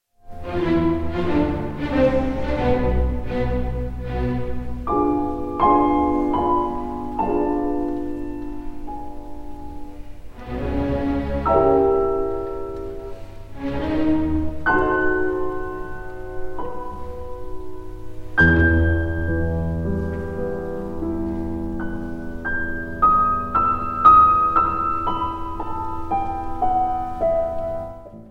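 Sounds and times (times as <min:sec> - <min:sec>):
piano and orchestra concerto in G major: 0:00.0 - 0:28.2.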